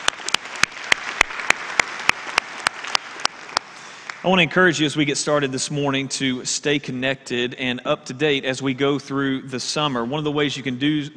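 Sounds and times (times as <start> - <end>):
audience clapping for online and television viewers: 0.0 - 4.7
speech: 4.2 - 11.1.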